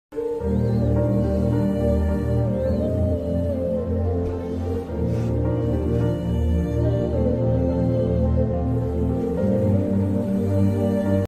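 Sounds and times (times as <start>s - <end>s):
Tamil sad background music: 0.2s - 11.2s.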